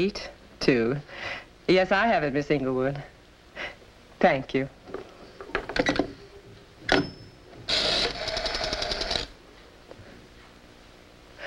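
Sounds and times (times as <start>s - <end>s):
speech: 0.0s - 4.8s
telephone being dialed: 7.7s - 9.3s.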